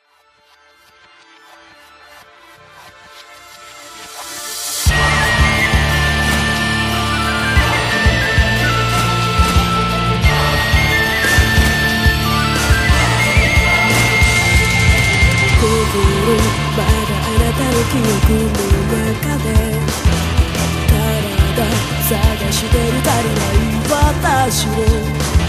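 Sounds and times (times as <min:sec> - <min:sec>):
outro music: 0:01.0 - 0:25.4.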